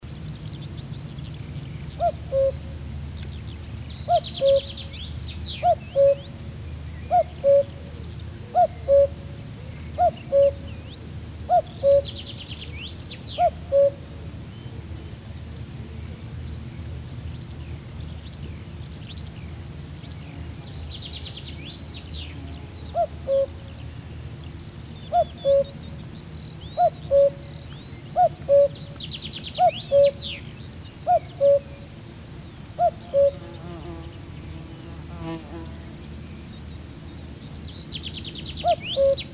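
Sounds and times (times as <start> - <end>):
common cuckoo calling: 2.0 - 2.8, 4.0 - 6.4, 7.0 - 12.5, 13.2 - 14.1, 22.9 - 23.7, 25.0 - 25.9, 26.6 - 31.9, 32.8 - 33.5, 38.6 - 39.3.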